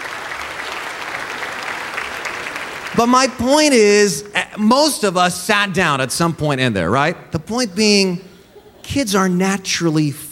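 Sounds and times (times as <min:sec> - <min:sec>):
round of applause: 0:00.0 - 0:03.5
speech: 0:03.0 - 0:10.3.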